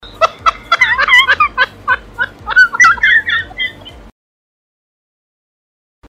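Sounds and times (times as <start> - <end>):
laughing: 0.2 - 4.1.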